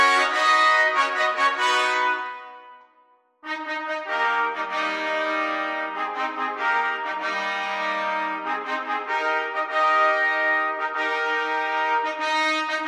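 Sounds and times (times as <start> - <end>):
classical trumpet quartet playing: 0.0 - 2.7, 3.4 - 12.8.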